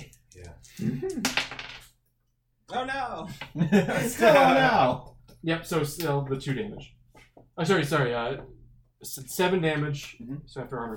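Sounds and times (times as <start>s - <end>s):
dice rolling on a table during a tabletop game: 1.2s - 2.0s
speech: 2.8s - 7.0s, 7.6s - 10.9s
laughter: 3.3s - 5.1s.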